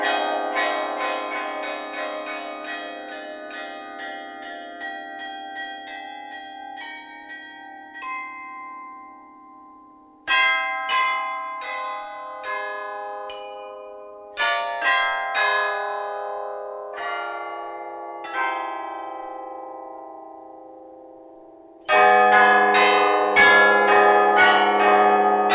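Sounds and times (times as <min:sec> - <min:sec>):
carillon bells cycle: 0:00.0 - 0:25.5.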